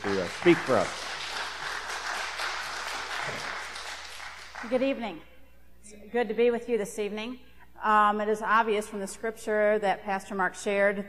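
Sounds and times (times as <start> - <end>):
audience applause for a guest speaker: 0.0 - 4.8
speech: 0.1 - 1.1, 4.6 - 5.3, 5.9 - 11.0.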